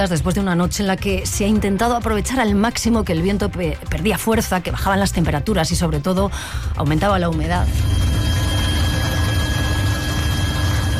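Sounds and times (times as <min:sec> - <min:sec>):
speech: 0:00.0 - 0:08.2
helicopters: 0:07.8 - 0:10.9.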